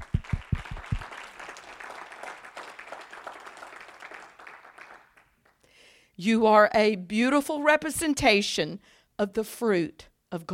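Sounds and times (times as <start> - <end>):
audience clapping hands: 0.0 - 5.6
speech: 6.2 - 10.5.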